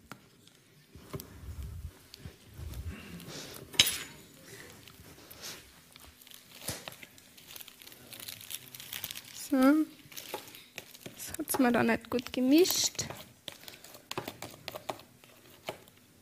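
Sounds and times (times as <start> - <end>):
utensils clinking: 3.5 - 4.4
plastic piping bag crinkling while cream is filled: 4.4 - 16.0
speech: 11.6 - 13.2.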